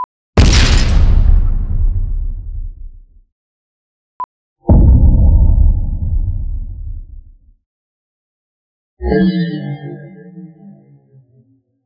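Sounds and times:
explosion: 0.4s - 3.2s, 4.7s - 7.4s.

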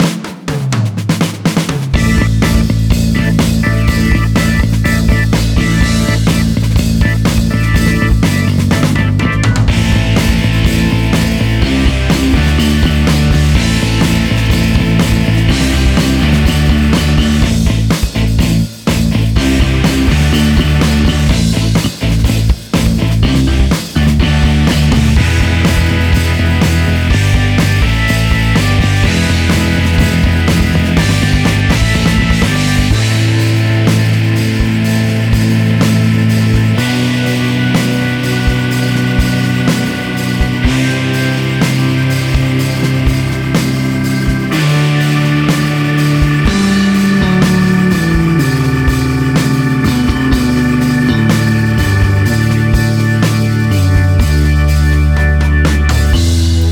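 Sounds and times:
bass: 0.0s - 56.7s.

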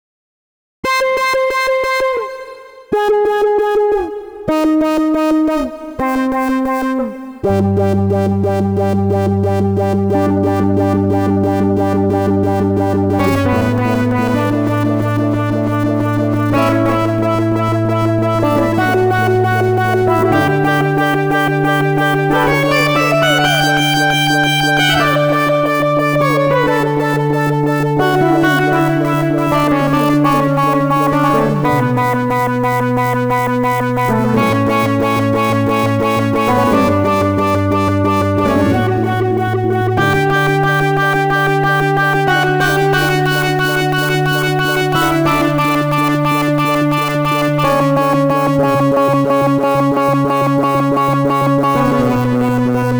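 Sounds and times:
hybrid sync synth sequence: 0.9s - 52.9s.

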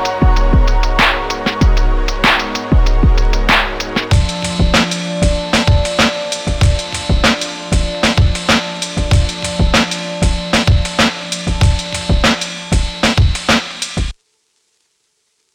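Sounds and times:
organic lo-fi drums: 0.0s - 14.2s.

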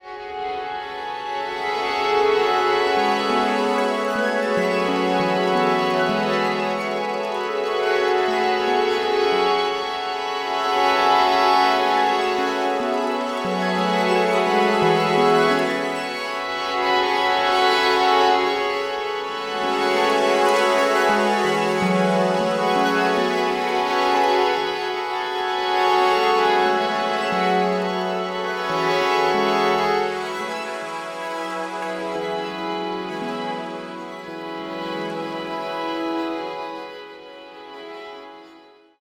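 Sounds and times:
layered strings: 0.0s - 39.0s.

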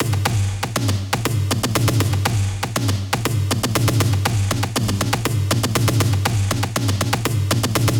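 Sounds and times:
loop main hits: 0.0s - 7.9s.

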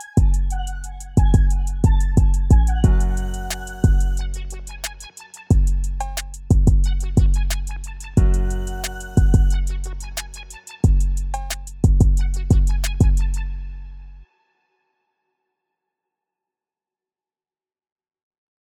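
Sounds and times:
drum kit: 0.0s - 13.4s.

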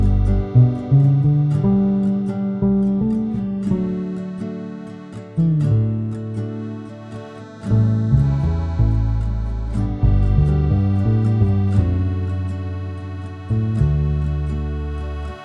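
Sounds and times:
guitarron playing a tune: 0.0s - 15.4s.

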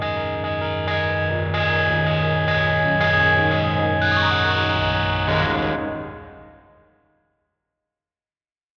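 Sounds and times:
sea feedback noise: 0.2s - 6.8s.

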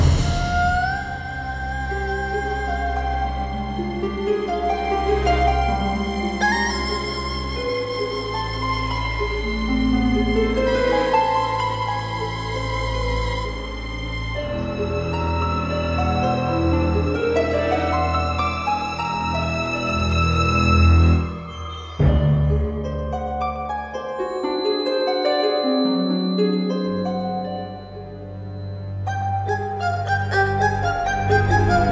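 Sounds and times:
erhu: 0.2s - 31.8s.

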